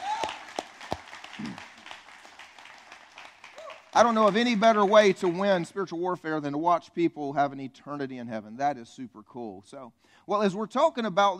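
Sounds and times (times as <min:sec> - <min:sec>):
crowd cheer: 0:00.0 - 0:05.6
audience applauding: 0:00.0 - 0:05.7
speech: 0:04.0 - 0:11.3.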